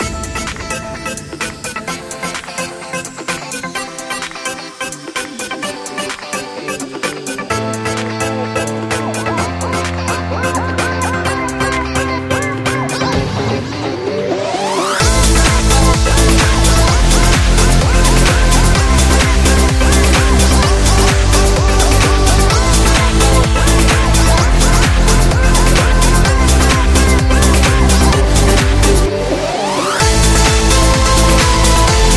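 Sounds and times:
fun pop music: 0.0s - 32.1s.

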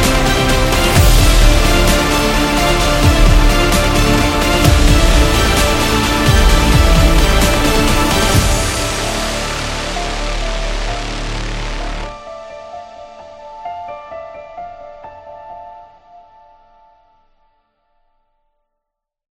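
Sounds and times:
cinematic beat: 0.0s - 13.6s.

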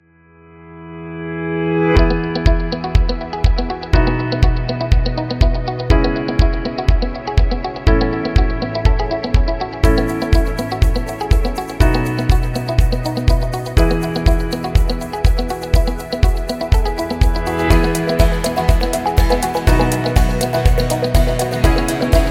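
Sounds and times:
corporate background music: 1.2s - 22.2s.

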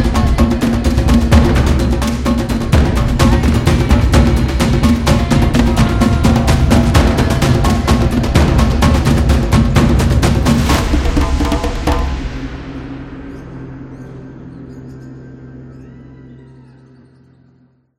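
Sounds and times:
African drums: 0.0s - 13.7s.

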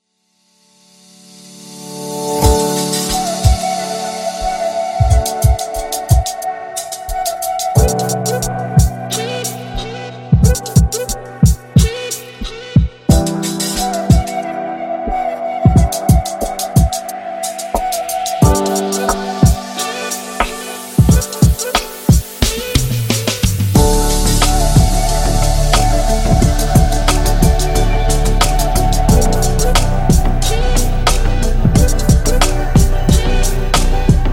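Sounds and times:
hip hop music: 2.3s - 34.3s.

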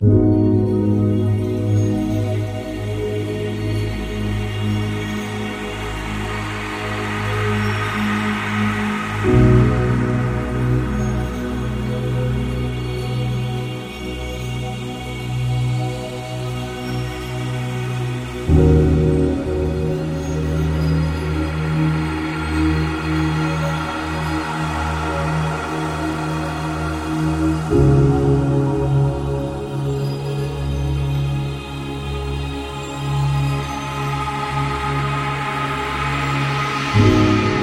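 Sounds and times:
spiritual song: 0.0s - 37.6s.

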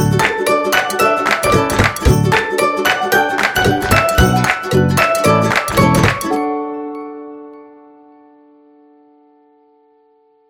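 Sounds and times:
funny quirky music: 0.0s - 6.4s.

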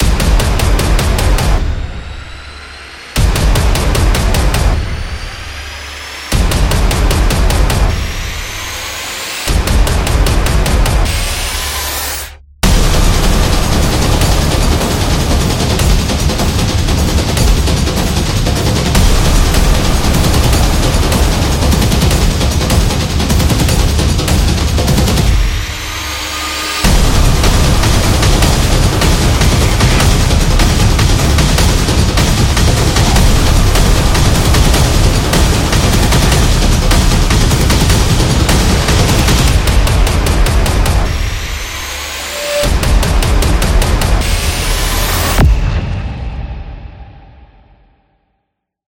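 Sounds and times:
epic sport music: 0.0s - 47.4s.

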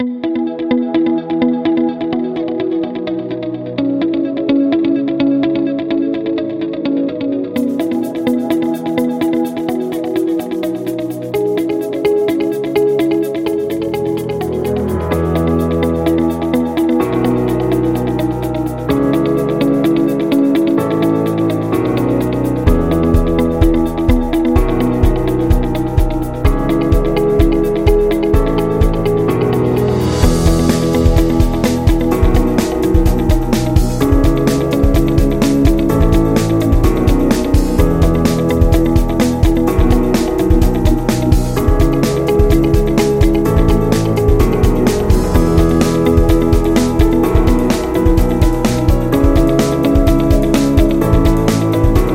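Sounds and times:
motivational corporate music: 0.0s - 52.1s.

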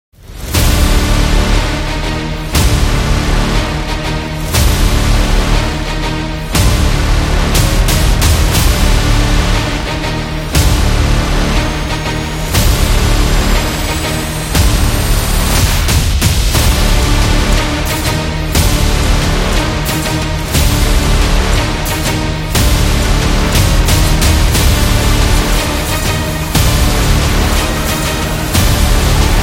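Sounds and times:
epic cinematic trailer music: 0.2s - 29.4s.

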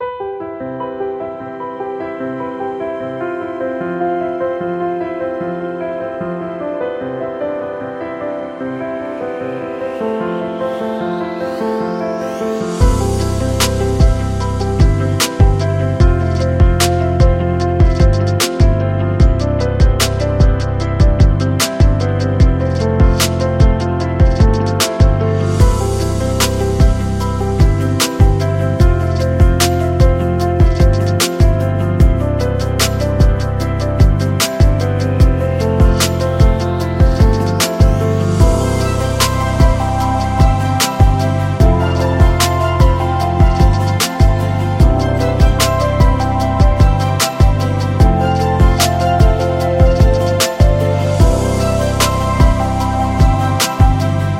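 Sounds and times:
mellow music: 0.0s - 54.3s.

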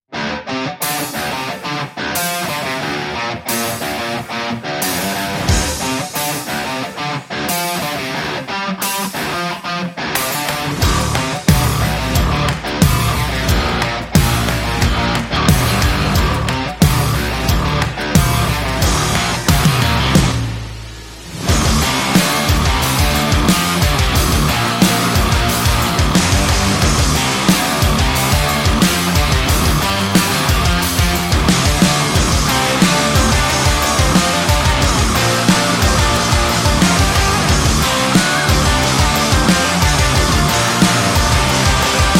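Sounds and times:
hard rock music: 0.0s - 42.1s.

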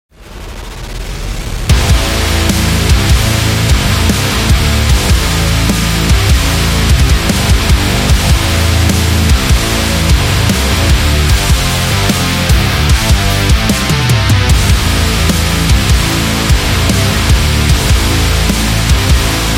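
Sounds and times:
metal music: 0.2s - 19.5s.

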